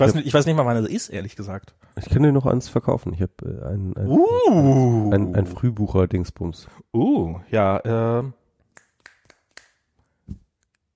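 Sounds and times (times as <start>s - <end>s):
speech: 0.0s - 8.4s
finger snaps: 8.7s - 10.0s.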